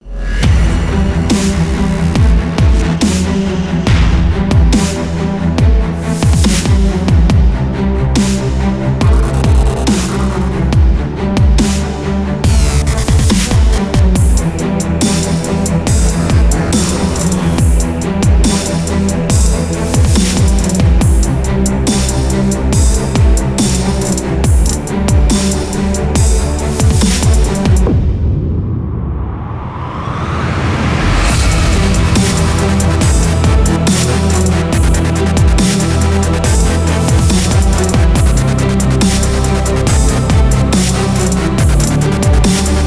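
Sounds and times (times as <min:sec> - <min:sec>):
epic motivational cinematic dubstep: 0:00.0 - 0:28.3, 0:29.7 - 0:42.8.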